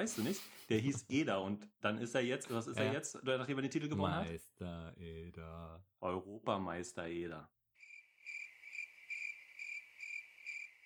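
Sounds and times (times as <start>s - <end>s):
speech: 0.0s - 7.6s
cricket chirping: 7.8s - 10.8s.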